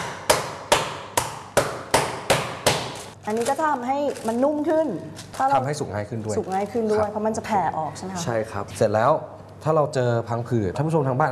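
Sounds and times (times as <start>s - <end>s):
pounding meat with a pot through paper: 0.0s - 3.2s
speech: 3.3s - 11.2s.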